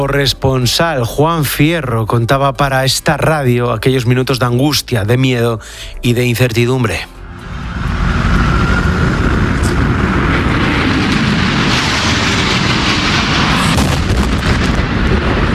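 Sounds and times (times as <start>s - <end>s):
speech: 0.0s - 7.2s
hijacked airliner striking the second World Trade Center tower in New York: 7.2s - 15.5s.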